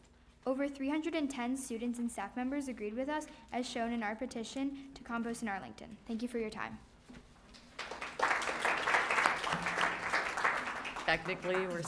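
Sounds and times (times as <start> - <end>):
speech: 0.4 - 6.9, 11.1 - 11.8
person clapping: 7.8 - 11.8.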